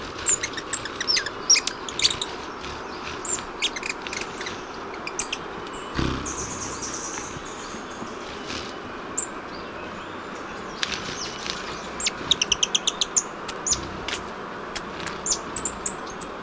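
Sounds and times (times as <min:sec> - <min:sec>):
Buff-tailed Coronet in South America: 0:00.2 - 0:16.3.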